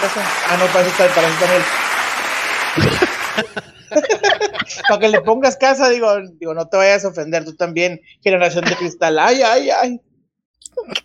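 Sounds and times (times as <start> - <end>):
speech: 0.0 - 1.8, 2.8 - 10.1, 10.7 - 11.0
applause sound effect: 0.0 - 5.2
laughter: 0.3 - 5.7, 8.5 - 9.0.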